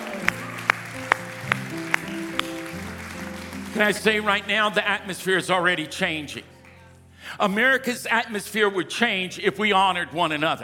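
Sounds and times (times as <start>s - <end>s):
hand clapping: 0.0s - 4.5s
speech: 3.8s - 6.5s, 7.3s - 10.6s.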